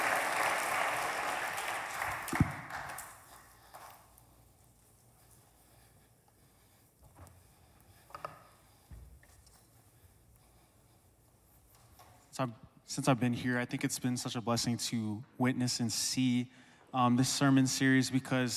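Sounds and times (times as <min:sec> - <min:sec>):
audience applause: 0:00.0 - 0:03.3
speech: 0:12.4 - 0:18.5.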